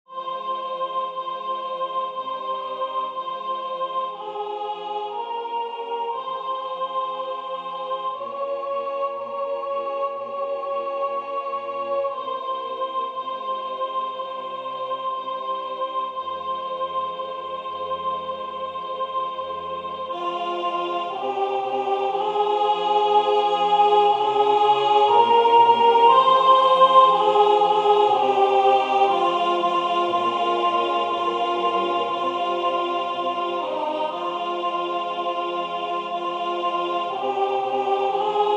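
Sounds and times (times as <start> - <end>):
soprano singing: 0.1 - 38.5.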